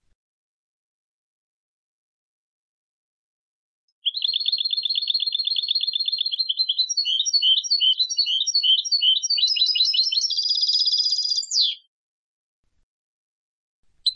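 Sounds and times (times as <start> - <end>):
European goldfinch Carduelis carduelis twittering trills: 4.1 - 11.8.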